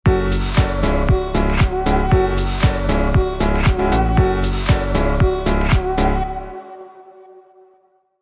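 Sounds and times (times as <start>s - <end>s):
powerful rhythmic uplifting music sting: 0.1s - 6.2s.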